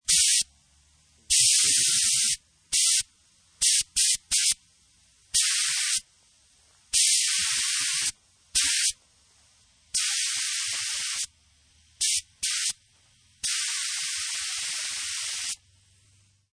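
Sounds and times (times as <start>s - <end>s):
paint spray gun leaking aerosol in bursts of varying lengths: 0.1s - 0.4s, 1.3s - 3.0s, 5.4s - 6.0s, 7.0s - 9.0s, 10.0s - 11.3s, 12.0s - 12.8s, 13.4s - 15.6s.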